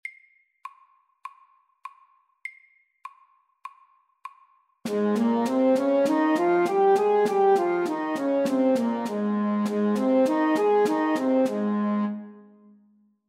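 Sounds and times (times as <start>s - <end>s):
loud music in A-flat major: 4.9s - 12.3s.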